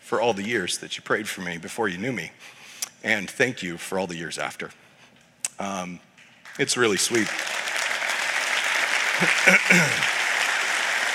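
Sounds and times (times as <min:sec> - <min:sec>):
speech: 0:00.1 - 0:04.8, 0:05.6 - 0:07.5, 0:09.2 - 0:10.2
audience clapping: 0:06.2 - 0:11.1.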